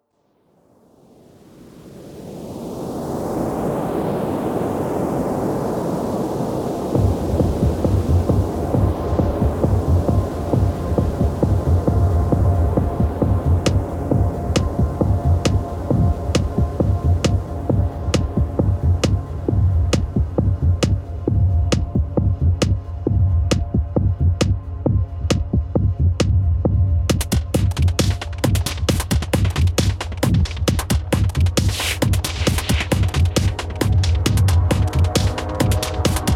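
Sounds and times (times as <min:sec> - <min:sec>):
wash of noise: 0:00.0 - 0:36.3.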